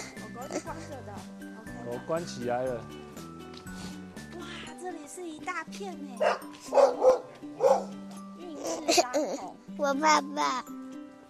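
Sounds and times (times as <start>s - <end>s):
speech: 1.9s - 3.0s, 5.0s - 10.8s
dog barking: 6.2s - 8.0s.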